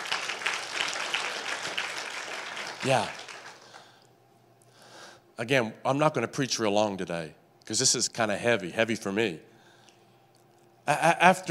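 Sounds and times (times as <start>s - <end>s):
audience applause: 0.0s - 3.9s
speech: 2.8s - 3.2s, 5.4s - 9.5s, 10.9s - 11.5s.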